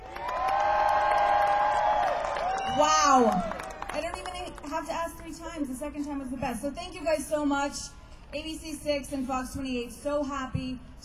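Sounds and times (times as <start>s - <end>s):
crowd cheering: 0.0s - 4.4s
speech: 2.8s - 11.0s.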